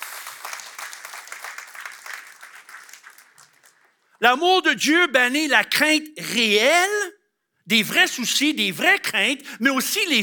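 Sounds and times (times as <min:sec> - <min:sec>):
audience applause: 0:00.0 - 0:04.1
speech: 0:04.2 - 0:07.1, 0:07.7 - 0:10.2.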